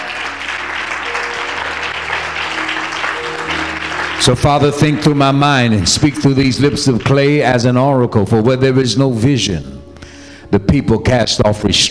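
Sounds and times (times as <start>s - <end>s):
audience clapping: 0.0s - 7.8s
speech: 4.2s - 9.8s, 10.5s - 11.9s.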